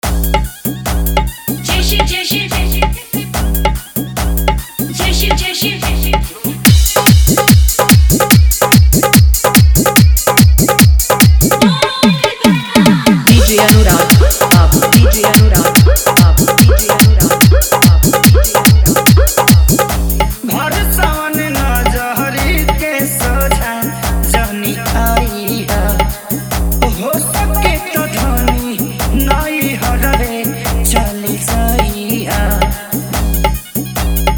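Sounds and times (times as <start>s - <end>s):
DJ song mix: 0.0s - 34.3s.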